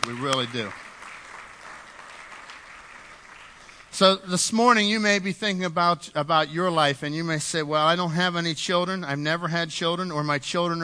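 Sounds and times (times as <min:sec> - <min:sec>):
speech: 0:00.0 - 0:00.9, 0:04.0 - 0:10.8
audience applause: 0:00.0 - 0:04.0.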